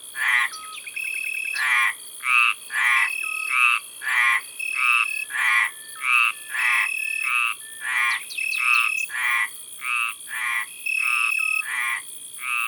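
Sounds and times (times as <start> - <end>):
Mediterranean tree frog calling: 0.2 - 12.6.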